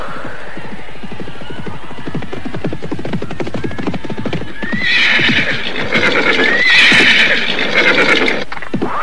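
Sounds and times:
horse hooves galloping: 0:00.1 - 0:08.9
ridden horse neighing: 0:04.6 - 0:08.5.

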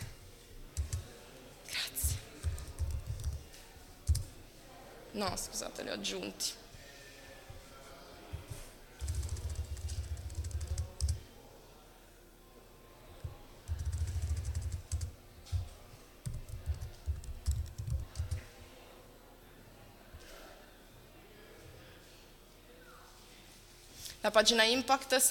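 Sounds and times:
faint murmur: 0:00.0 - 0:25.3
computer keyboard typing: 0:00.7 - 0:01.1, 0:02.0 - 0:04.3, 0:09.0 - 0:11.2, 0:13.6 - 0:18.5
speech: 0:05.2 - 0:06.6, 0:24.3 - 0:25.3.

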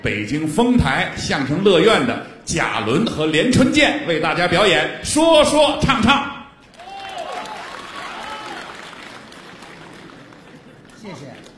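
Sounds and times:
speech: 0:00.0 - 0:06.4
audience applause at a Beijing crosstalk comedy show: 0:06.6 - 0:11.5.

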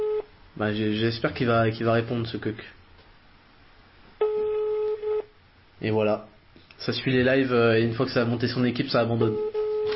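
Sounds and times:
phone call ringing tone: 0:00.0 - 0:00.3, 0:04.2 - 0:05.3, 0:09.2 - 0:09.9
speech: 0:00.6 - 0:02.8, 0:05.8 - 0:09.6.

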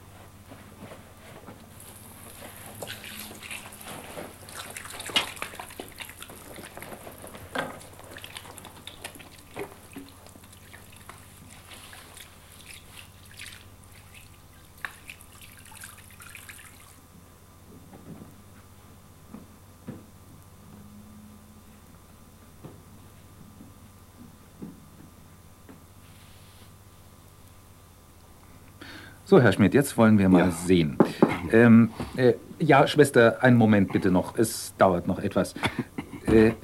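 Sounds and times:
water running at a sink as a doctor washes hands: 0:01.8 - 0:17.0
water dripping at a sink: 0:02.8 - 0:07.0, 0:07.8 - 0:17.0
speech: 0:29.3 - 0:36.6.

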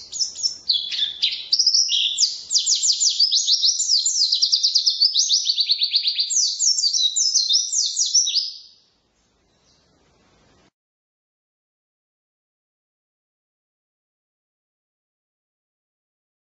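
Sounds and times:
white-eye song: 0:00.0 - 0:10.7.

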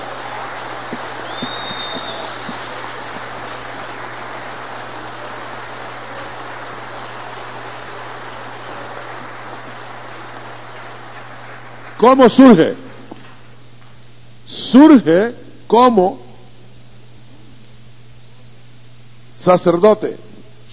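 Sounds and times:
audience applauding: 0:00.0 - 0:13.5
speech: 0:12.0 - 0:12.9, 0:14.7 - 0:16.2, 0:19.4 - 0:20.7.

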